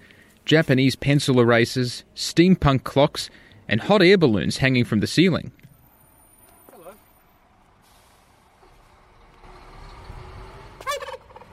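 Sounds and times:
speech: 0.5 - 5.6
pet turkey Bonza gobbling: 10.8 - 11.5.

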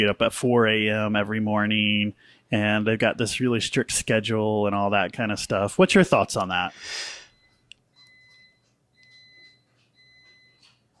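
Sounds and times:
speech: 0.0 - 7.2
dump truck reversing beeper: 7.1 - 10.8.

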